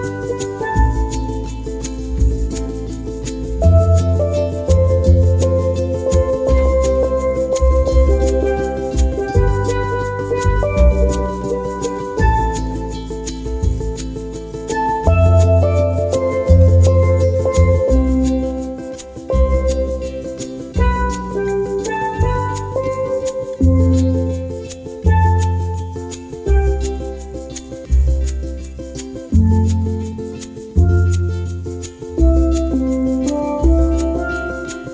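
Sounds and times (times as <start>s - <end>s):
steel drum: 0.0s - 34.9s.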